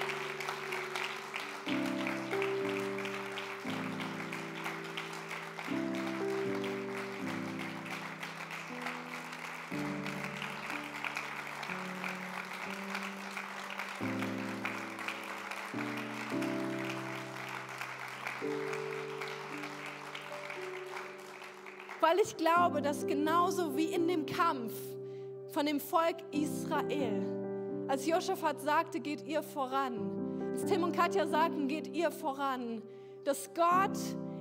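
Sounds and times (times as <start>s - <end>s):
audience applause: 0.0s - 22.6s
speech: 22.1s - 24.9s, 25.5s - 27.3s, 27.9s - 34.2s.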